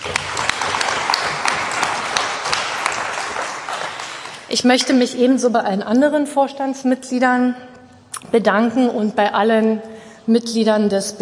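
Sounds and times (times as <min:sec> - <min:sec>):
audience applause: 0:00.0 - 0:04.5
speech: 0:04.5 - 0:07.7, 0:08.3 - 0:11.2.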